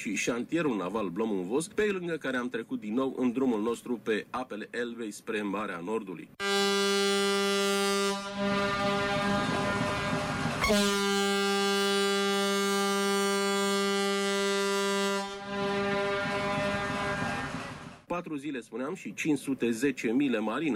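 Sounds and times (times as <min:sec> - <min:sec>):
speech: 0:00.0 - 0:06.6, 0:08.4 - 0:09.8, 0:10.7 - 0:11.0, 0:18.2 - 0:20.7
ship's siren horn blasts in port: 0:06.4 - 0:18.1.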